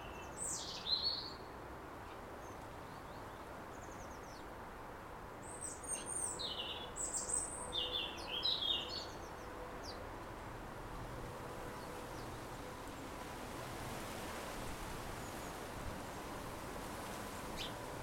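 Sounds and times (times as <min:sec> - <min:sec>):
garden ambience: 0:00.0 - 0:18.0.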